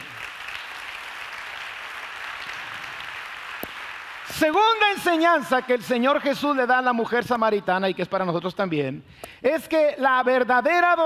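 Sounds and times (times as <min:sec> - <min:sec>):
audience applause: 0:00.0 - 0:05.2
speech: 0:04.3 - 0:11.0.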